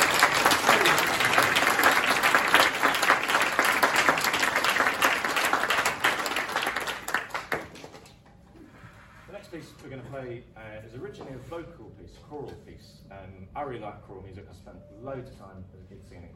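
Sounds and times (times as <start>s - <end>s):
audience applause: 0.0s - 8.0s
speech: 10.8s - 16.3s.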